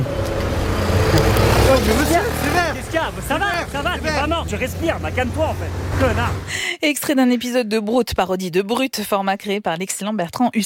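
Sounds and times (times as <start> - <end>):
cars passing in traffic at a red light: 0.0 - 6.7
speech: 3.2 - 10.6.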